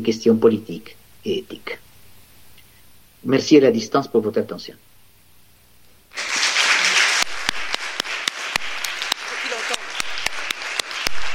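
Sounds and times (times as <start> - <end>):
speech: 0.0 - 1.8, 3.2 - 4.8
audience applause in large hall: 6.1 - 11.3.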